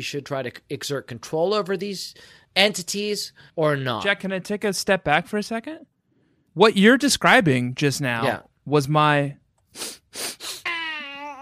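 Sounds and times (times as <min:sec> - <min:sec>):
speech: 0:00.0 - 0:05.9, 0:06.6 - 0:10.4
sniffle: 0:09.7 - 0:10.7.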